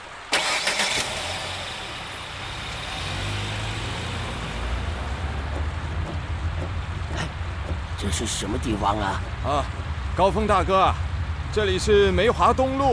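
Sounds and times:
car engine starting and running as the vehicle pulls away: 0.2 - 10.5
speech: 8.0 - 12.9.

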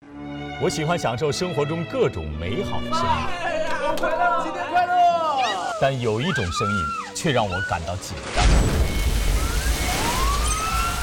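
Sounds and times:
speech: 0.6 - 8.9
fire truck siren passing by: 8.8 - 11.0.

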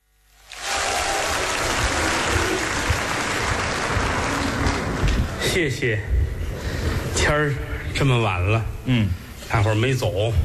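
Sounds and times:
audience applause: 0.4 - 5.4
speech: 5.5 - 6.2, 7.2 - 10.4.

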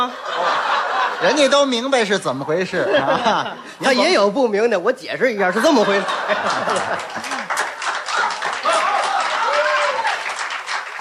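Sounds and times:
speech: 0.0 - 0.5, 1.2 - 7.3
laughter: 0.0 - 4.2, 5.4 - 9.2
audience applause: 6.3 - 10.9.

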